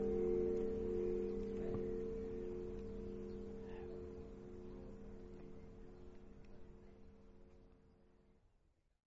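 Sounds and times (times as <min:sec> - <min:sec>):
bells ringing: 0:00.0 - 0:05.9.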